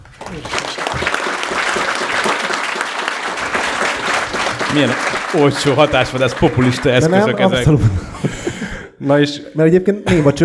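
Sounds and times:
live audience applause: 0:00.0 - 0:07.8
speech: 0:00.3 - 0:00.8, 0:04.7 - 0:10.4
laughter: 0:03.4 - 0:09.2.

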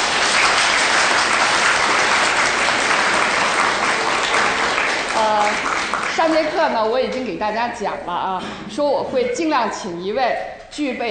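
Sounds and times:
classroom applause: 0:00.0 - 0:07.0
speech: 0:06.2 - 0:11.0.

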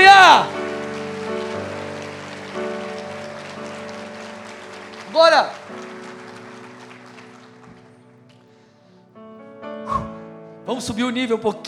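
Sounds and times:
audience applause: 0:00.0 - 0:08.5
sustained keyboard chords: 0:00.0 - 0:11.6
speech: 0:05.2 - 0:05.7, 0:10.7 - 0:11.6.

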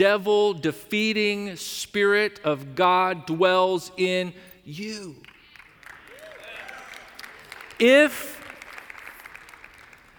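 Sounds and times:
speech: 0:00.0 - 0:05.3, 0:07.8 - 0:08.4
church audience clapping: 0:05.2 - 0:10.1.

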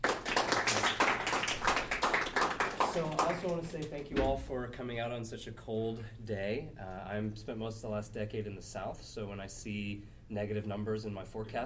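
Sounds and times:
audience applause welcoming a guest speaker: 0:00.0 - 0:04.0
speech: 0:03.0 - 0:11.6.

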